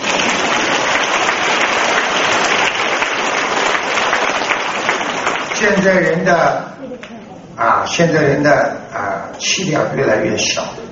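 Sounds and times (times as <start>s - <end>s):
audience applause: 0.0s - 6.0s
speech: 5.6s - 10.8s.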